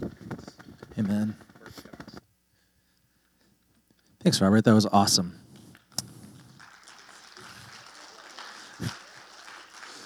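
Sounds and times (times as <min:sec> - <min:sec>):
speech: 0:01.0 - 0:01.4, 0:04.3 - 0:05.4
audience applause: 0:06.2 - 0:10.0.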